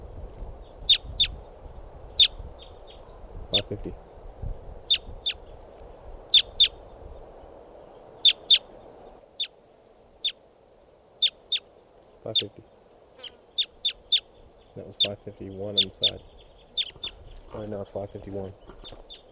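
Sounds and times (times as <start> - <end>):
flock of type 2 crossbills giving kip calls: 0.6 - 1.4, 2.1 - 3.8, 4.8 - 5.6, 6.3 - 9.6, 10.2 - 10.4, 11.2 - 19.2
speech: 3.7 - 4.1, 12.3 - 12.8, 14.8 - 16.4, 17.5 - 19.0.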